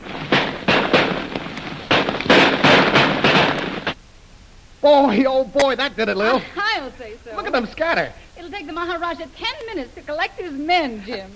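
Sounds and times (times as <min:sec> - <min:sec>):
gunshots fired over the heads of approaching men: 0:00.0 - 0:04.0
speech: 0:04.8 - 0:11.3.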